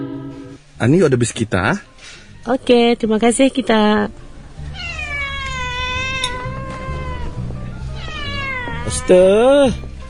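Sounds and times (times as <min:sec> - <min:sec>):
speech: 0:00.8 - 0:04.2, 0:08.9 - 0:09.9
cat meowing in drawn-out wails: 0:04.7 - 0:09.8.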